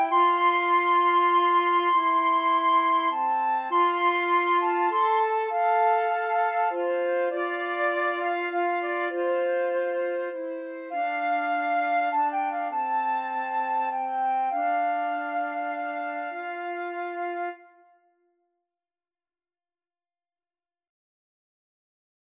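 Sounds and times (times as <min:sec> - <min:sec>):
flute trio playing a hymn: 0:00.0 - 0:17.8.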